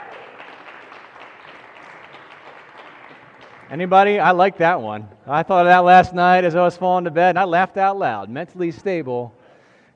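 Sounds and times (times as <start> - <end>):
audience applause: 0.0 - 4.2
speech: 3.7 - 9.4.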